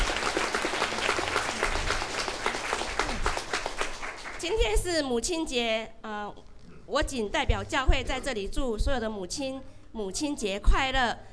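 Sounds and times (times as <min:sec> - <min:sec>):
audience applauding: 0:00.0 - 0:04.6
speech: 0:04.5 - 0:11.3.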